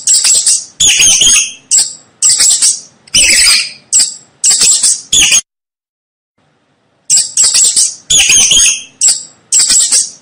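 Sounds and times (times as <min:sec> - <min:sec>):
mouse squeaking: 0:00.0 - 0:05.5, 0:07.0 - 0:10.2.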